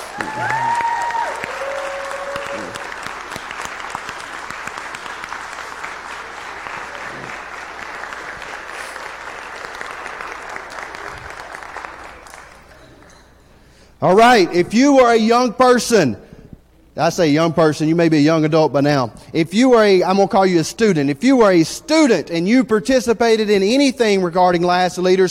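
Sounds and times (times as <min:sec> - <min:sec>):
round of applause: 0:00.0 - 0:12.8
speech: 0:00.2 - 0:00.6, 0:14.0 - 0:16.2, 0:17.0 - 0:25.2.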